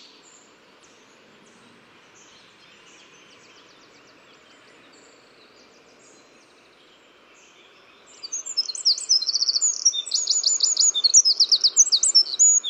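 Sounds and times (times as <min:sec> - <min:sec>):
Eurasian wren Troglodytes troglodytes singing ringing trills and sharp chips: 0:08.2 - 0:12.6.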